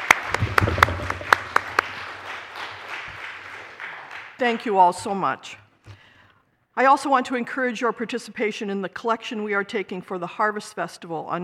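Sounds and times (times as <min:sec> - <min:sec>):
audience applause: 0:00.0 - 0:04.4
speech: 0:04.4 - 0:05.6, 0:06.8 - 0:11.4.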